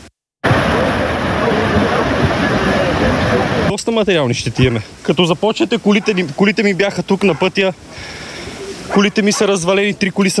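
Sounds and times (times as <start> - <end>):
rushing flood river water: 0.4 - 10.3
speech: 3.8 - 8.3, 8.9 - 10.3.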